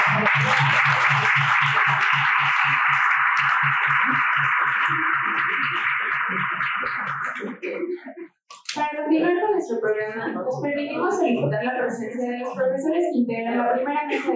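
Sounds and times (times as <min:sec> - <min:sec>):
applause: 0:00.0 - 0:07.8
speech: 0:00.1 - 0:14.3.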